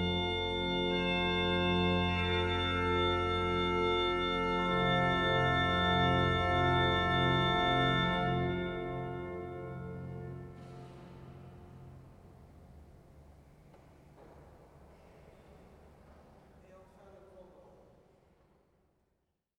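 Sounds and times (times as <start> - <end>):
Jeux de Tierce organ improvisation: 0.0 - 12.1.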